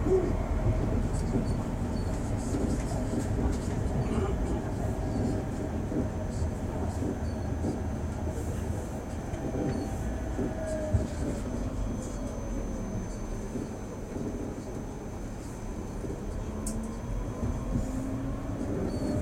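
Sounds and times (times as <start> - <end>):
M2 tram wheels and motor rumbling: 0.0 - 19.2
squeals: 9.6 - 13.8, 18.8 - 19.2.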